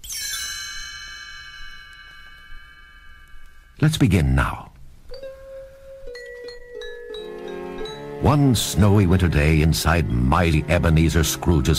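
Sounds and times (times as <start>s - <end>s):
page-turn chimes ringing: 0.0s - 3.8s, 5.1s - 8.5s
speech: 3.8s - 4.7s, 8.3s - 11.7s.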